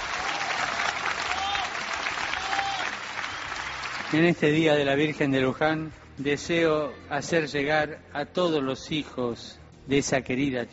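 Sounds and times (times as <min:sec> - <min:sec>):
crowd applause: 0:00.0 - 0:04.5
speech: 0:04.1 - 0:10.7.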